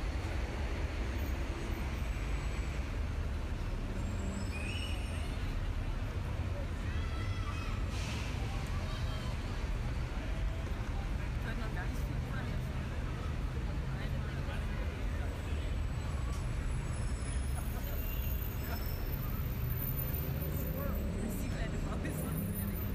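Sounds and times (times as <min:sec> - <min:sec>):
New York city ambience: 0:00.0 - 0:22.9.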